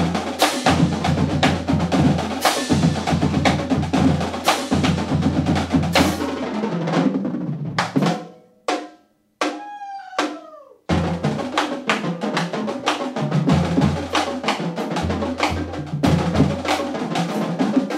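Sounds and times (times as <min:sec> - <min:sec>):
marching band: 0:00.0 - 0:08.1, 0:10.9 - 0:17.9
drumline drumming: 0:00.0 - 0:08.2, 0:09.5 - 0:17.9.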